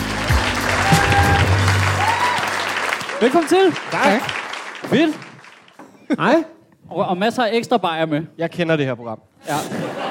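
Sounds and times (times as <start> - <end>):
audience applause welcoming a wrestler onto a Danish talk show: 0.0 - 5.8
speech: 3.2 - 5.3, 6.1 - 10.0
laughter: 9.4 - 10.0.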